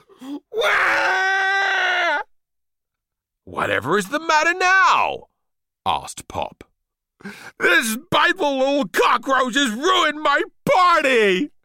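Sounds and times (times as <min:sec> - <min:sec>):
narrator imitating a spoilt child wailing: 0:00.3 - 0:02.3
speech: 0:03.6 - 0:11.6.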